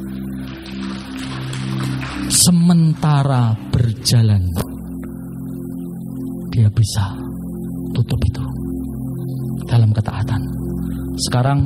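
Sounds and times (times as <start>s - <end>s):
sustained low musical tone humming: 0.0s - 11.6s
audience applause: 0.8s - 2.8s
speech: 2.3s - 4.7s, 6.6s - 7.2s, 7.9s - 8.6s, 9.6s - 10.6s, 11.2s - 11.6s.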